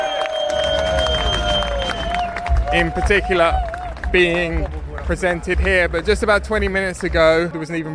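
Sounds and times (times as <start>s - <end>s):
whistle-like tones in the crowd: 0.0s - 2.6s
crowd cheering at cycling team presentation in Heroes Square, Budapest: 0.0s - 7.9s
speech: 2.7s - 7.9s.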